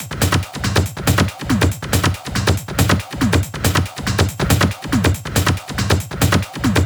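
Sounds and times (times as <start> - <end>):
Genetic Kit drum beat: 0.0 - 6.8.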